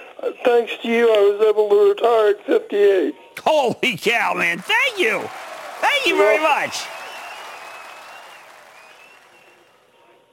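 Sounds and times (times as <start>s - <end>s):
speech: 0.2s - 7.0s
hand clapping: 4.6s - 9.8s.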